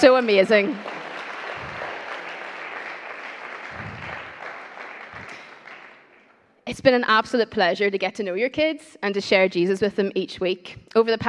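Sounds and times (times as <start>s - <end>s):
speech: 0.0s - 0.9s, 6.7s - 11.2s
crowd applauding: 0.0s - 6.4s.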